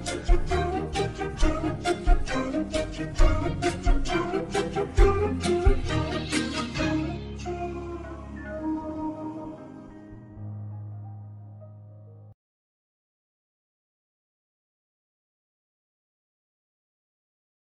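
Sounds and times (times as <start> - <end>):
love background music: 0.0 - 12.4.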